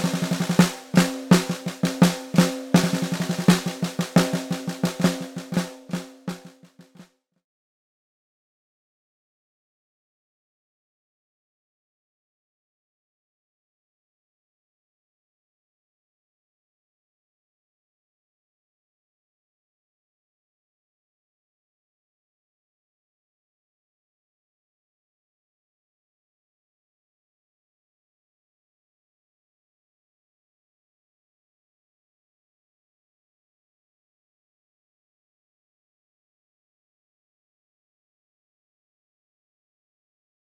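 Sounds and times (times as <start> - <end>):
vintage mahogany koa low drum: 0.0 - 6.5.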